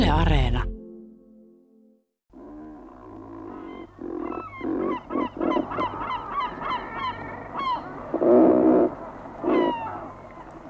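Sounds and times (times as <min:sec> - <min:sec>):
speech: 0:00.1 - 0:00.7
razorbills calling with harsh rasping croaks: 0:02.3 - 0:10.6.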